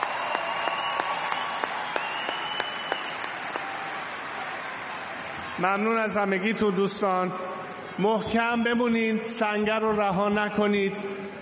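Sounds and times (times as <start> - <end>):
audience applause for the evening's performers: 0.0 - 6.4
speech: 5.6 - 11.2.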